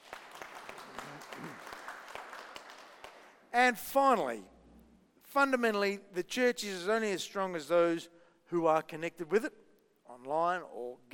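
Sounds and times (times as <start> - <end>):
audience applause: 0.0 - 3.3
speech: 3.6 - 4.5, 5.3 - 9.6, 10.2 - 11.1.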